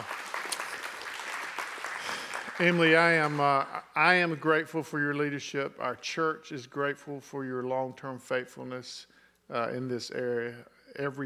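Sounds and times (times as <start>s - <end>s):
audience clapping: 0.0s - 3.9s
speech: 2.6s - 11.2s.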